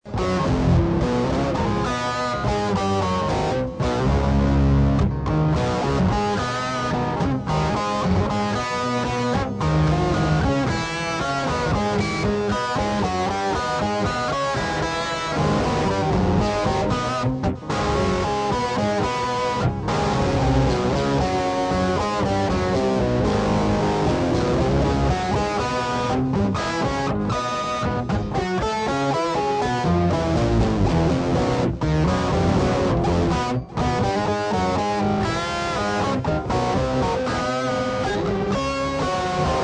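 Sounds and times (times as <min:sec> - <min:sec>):
guitar: 0:00.0 - 0:39.6.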